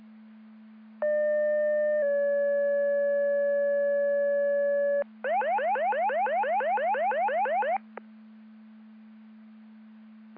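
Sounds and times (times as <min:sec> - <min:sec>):
siren: 0:01.0 - 0:08.0.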